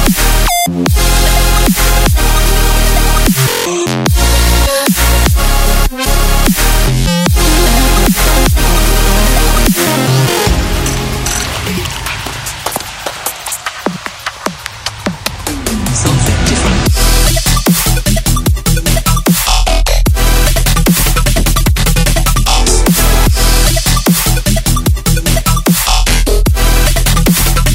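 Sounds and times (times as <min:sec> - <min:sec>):
dubstep music: 0:00.0 - 0:27.7.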